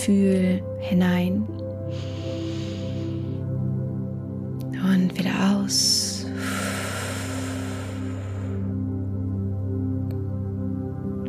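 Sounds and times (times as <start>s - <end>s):
speech: 0.0s - 2.1s, 4.9s - 6.5s
low musical drone: 0.0s - 11.2s
deep breath drawn in through the nose: 1.9s - 3.6s, 6.2s - 9.0s.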